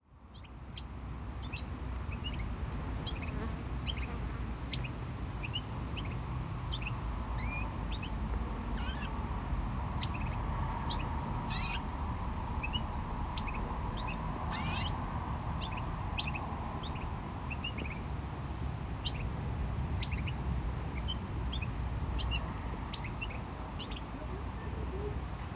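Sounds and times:
small bird chirping: 0:00.3 - 0:08.2, 0:08.8 - 0:09.2, 0:10.0 - 0:11.9, 0:12.6 - 0:15.0, 0:15.6 - 0:18.1, 0:19.0 - 0:19.3, 0:20.0 - 0:20.4, 0:21.0 - 0:24.1
low rumble of traffic: 0:00.6 - 0:25.5.

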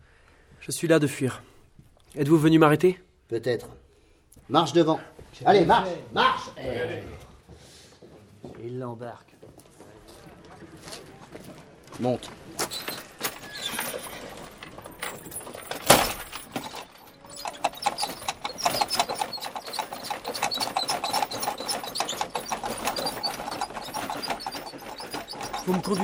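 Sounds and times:
speech: 0:00.6 - 0:01.5, 0:02.1 - 0:03.8, 0:04.5 - 0:07.7, 0:08.6 - 0:09.3, 0:11.4 - 0:12.8, 0:25.7 - 0:26.0
hooves of a horse-drawn fiacre clip-clopping through Paris: 0:07.2 - 0:26.0.

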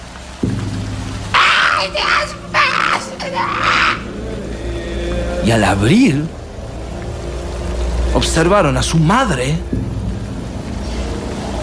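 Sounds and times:
steady low rumbling drone: 0:00.0 - 0:11.6
shrill screams from inside a hut: 0:01.3 - 0:04.2
speech: 0:01.8 - 0:04.1, 0:05.4 - 0:06.4, 0:08.1 - 0:09.9.

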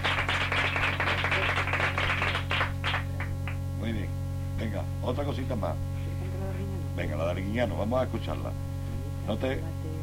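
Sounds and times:
group applause: 0:00.0 - 0:03.6
low steady hum: 0:00.0 - 0:10.0
speech: 0:05.1 - 0:06.0, 0:07.0 - 0:08.7, 0:09.3 - 0:10.0.

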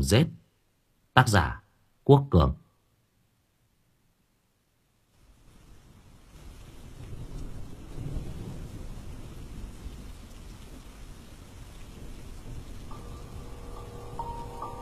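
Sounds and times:
speech: 0:00.0 - 0:00.4, 0:01.2 - 0:02.6
thunderstorm with heavy rain: 0:05.3 - 0:14.8
cold wind blowing through bamboo: 0:12.3 - 0:14.8.

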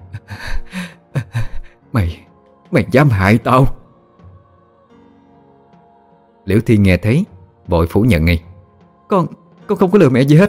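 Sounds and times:
heavy panting breaths: 0:00.1 - 0:01.9
speech: 0:02.0 - 0:03.8, 0:06.5 - 0:08.5, 0:09.1 - 0:10.4.

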